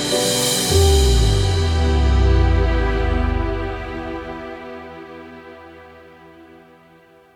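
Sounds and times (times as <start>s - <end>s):
epic drum kit: 0.2s - 4.5s.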